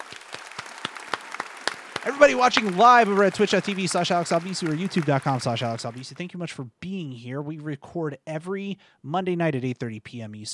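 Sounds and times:
people clapping: 0:00.0 - 0:06.3
speech: 0:02.0 - 0:10.5.

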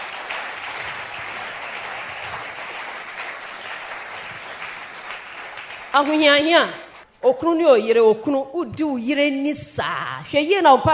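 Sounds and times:
audience clapping hands: 0:00.0 - 0:07.0
speech: 0:06.0 - 0:10.9.

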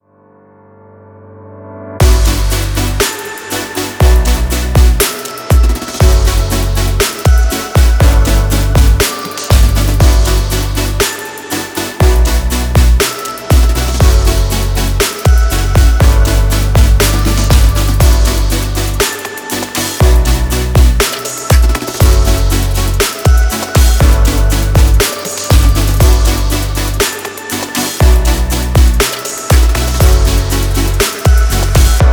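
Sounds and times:
future bass music: 0:02.0 - 0:32.1.

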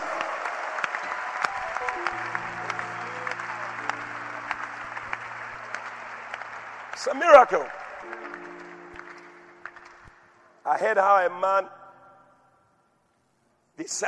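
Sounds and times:
audience applause: 0:00.0 - 0:10.4
speech: 0:07.0 - 0:07.8, 0:10.7 - 0:11.7, 0:13.9 - 0:14.0.

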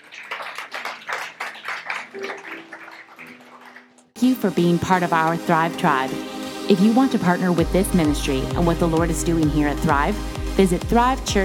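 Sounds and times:
crowd round of applause: 0:00.0 - 0:04.2
speech: 0:02.2 - 0:02.8, 0:04.2 - 0:11.4.

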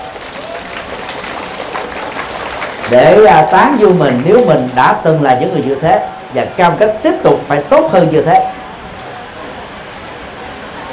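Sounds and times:
loud applause: 0:00.0 - 0:05.6
speech: 0:02.9 - 0:08.5.

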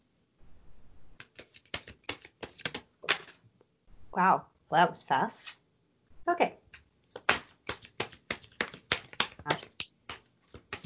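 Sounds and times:
deck of playing cards being shuffled: 0:01.2 - 0:03.4, 0:07.1 - 0:10.8
speech: 0:04.2 - 0:05.5, 0:06.3 - 0:06.6.

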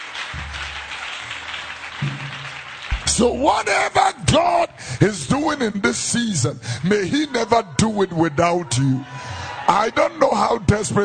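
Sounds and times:
audience clapping hands: 0:00.0 - 0:05.4
speech: 0:03.2 - 0:11.0.

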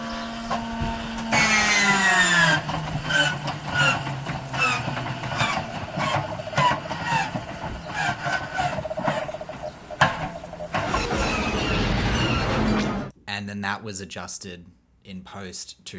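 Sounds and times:
revved biplane motor chugging: 0:00.0 - 0:12.7
high squeaky whine of biplane motor kicking in: 0:00.0 - 0:13.1
speech: 0:13.8 - 0:15.9.

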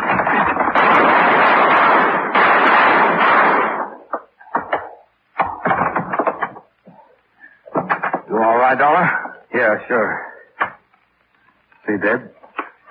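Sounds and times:
gunshot shooting a door lock: 0:00.0 - 0:06.2
speech: 0:08.7 - 0:10.3, 0:12.0 - 0:12.4.

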